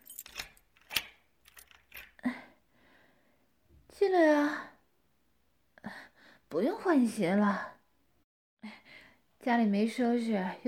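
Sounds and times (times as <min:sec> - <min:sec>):
keys jangling while opening the door: 0:00.0 - 0:02.2
speech: 0:06.5 - 0:07.7, 0:09.4 - 0:10.6.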